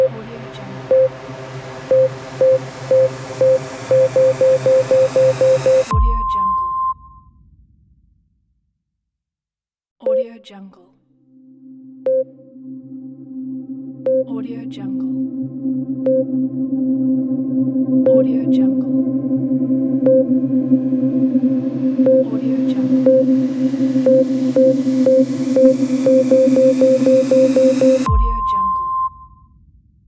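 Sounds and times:
ambient countdown beeps: 0:00.0 - 0:07.2, 0:10.0 - 0:10.4, 0:12.0 - 0:12.7, 0:14.0 - 0:29.4.

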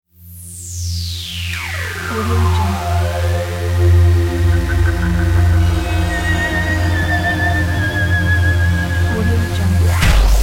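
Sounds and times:
scary logo sting: 0:00.7 - 0:10.4.

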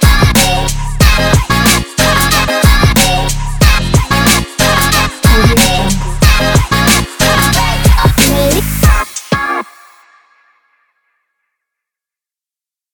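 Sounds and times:
hip hop music: 0:00.0 - 0:09.8.

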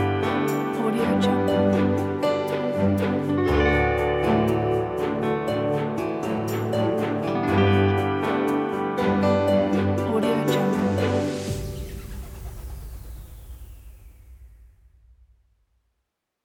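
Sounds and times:
fun kid games music: 0:00.0 - 0:12.2.

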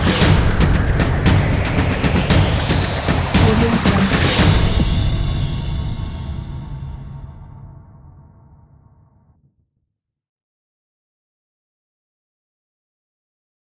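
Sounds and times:
cinematic trailer percussion: 0:00.0 - 0:09.2.

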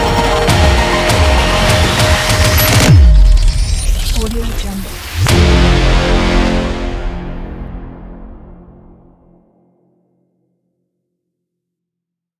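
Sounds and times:
cyberpunk music: 0:00.0 - 0:09.5.

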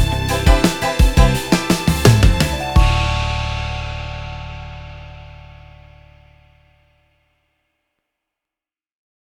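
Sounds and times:
disco music: 0:00.0 - 0:05.6.

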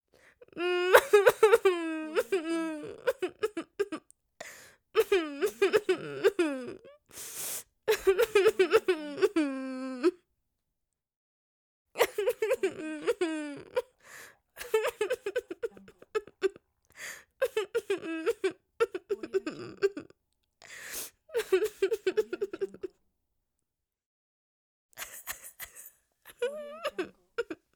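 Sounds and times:
girl crying: 0:00.6 - 0:04.0, 0:05.0 - 0:06.8, 0:07.9 - 0:10.2, 0:12.0 - 0:13.9, 0:14.6 - 0:16.5, 0:17.4 - 0:20.1, 0:21.3 - 0:22.9, 0:26.3 - 0:27.7.

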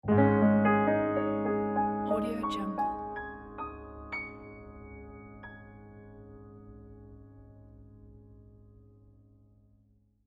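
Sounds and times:
piano logo jingle: 0:00.0 - 0:08.3.

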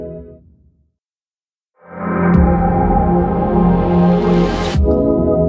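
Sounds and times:
bright audio logo: 0:02.3 - 0:05.4.

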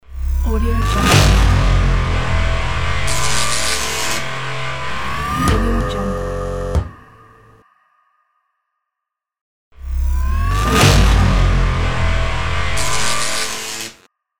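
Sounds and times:
glitchy audio logo: 0:00.4 - 0:06.8, 0:09.9 - 0:14.0.

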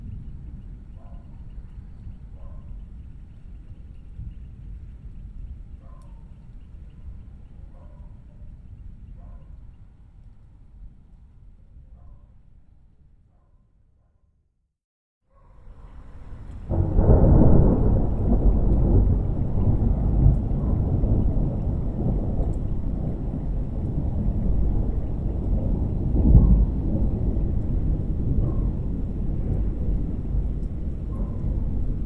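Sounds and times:
distant deep thunder rumble: 0:15.6 - 0:32.0.

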